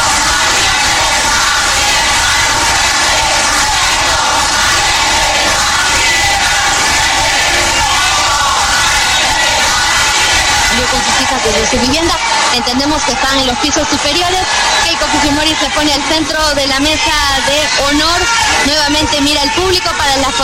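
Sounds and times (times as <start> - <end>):
crowd chanting from the stands: 0.0 - 20.4
speech: 11.5 - 20.4.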